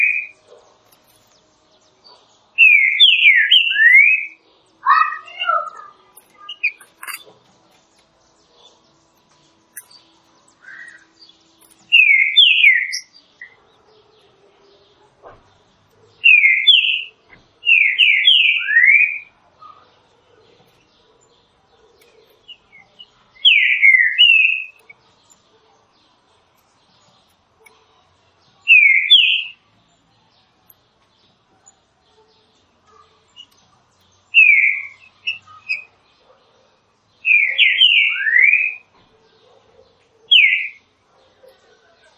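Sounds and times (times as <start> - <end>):
Green-winged saltator song: 2.6 - 7.2, 10.6 - 11.1, 11.9 - 13.6, 16.2 - 19.3, 22.5 - 24.9, 28.7 - 29.6, 34.3 - 35.9, 37.2 - 38.9, 40.3 - 40.8.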